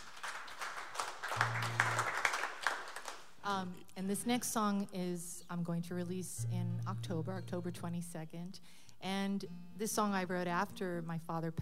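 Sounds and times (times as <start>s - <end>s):
audience applause for the opening act at a live music show: 0.0s - 3.3s
speech: 3.6s - 11.6s.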